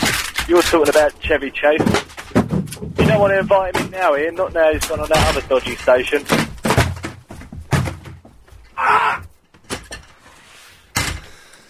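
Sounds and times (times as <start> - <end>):
fire extinguisher knocked about and broken: 0.0 - 8.7
speech: 0.5 - 2.1, 2.8 - 6.4.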